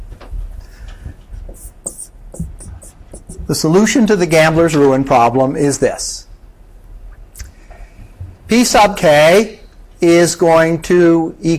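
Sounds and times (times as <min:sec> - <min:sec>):
scratchy writing strokes of a math solution: 0:01.3 - 0:03.6
speech: 0:03.5 - 0:06.2, 0:08.5 - 0:11.5.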